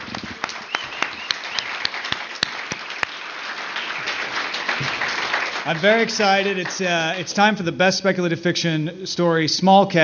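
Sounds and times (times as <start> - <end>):
audience applause: 0.0 - 7.3
speech: 5.6 - 10.0.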